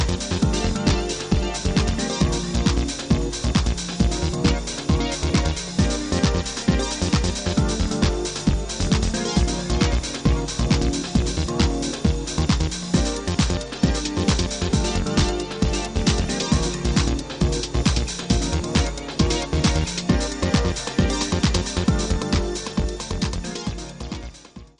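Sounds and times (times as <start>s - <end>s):
drum ensemble: 0.0s - 24.4s.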